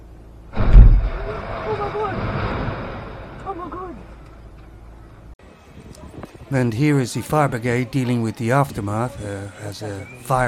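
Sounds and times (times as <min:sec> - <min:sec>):
house explosion in London: 0:00.6 - 0:03.7
speech: 0:06.5 - 0:10.4.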